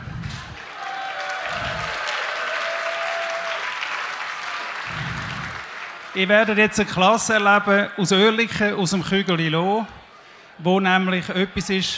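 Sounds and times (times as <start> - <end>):
audience applause: 0.2 - 7.7
speech: 6.2 - 10.0, 10.6 - 11.9.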